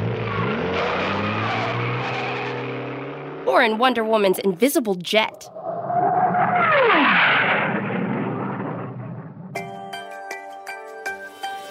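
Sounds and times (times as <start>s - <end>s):
sustained tire squeal: 0.0s - 3.1s, 5.6s - 9.0s
powerful car engine roaring as the vehicle speeds off: 0.0s - 3.5s, 5.5s - 9.6s
speech: 3.6s - 5.8s.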